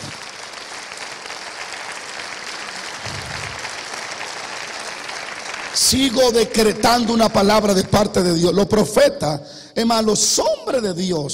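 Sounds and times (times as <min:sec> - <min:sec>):
audience applauding loudly: 0:00.0 - 0:07.1
speech: 0:05.8 - 0:11.3.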